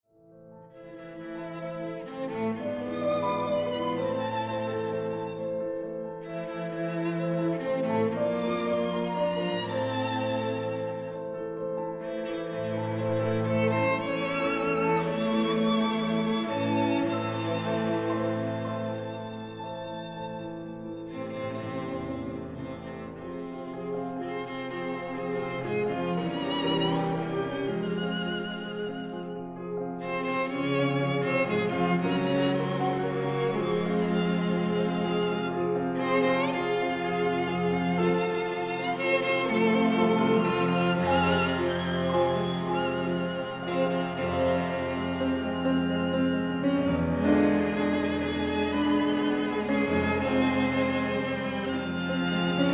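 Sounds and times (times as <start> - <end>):
piano and string quintet in F minor: 0.2 - 52.7.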